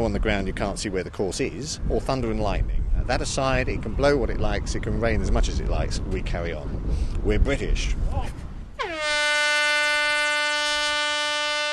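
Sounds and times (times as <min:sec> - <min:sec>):
speech: 0:00.0 - 0:08.4
loud horn signalling the start: 0:08.8 - 0:11.7.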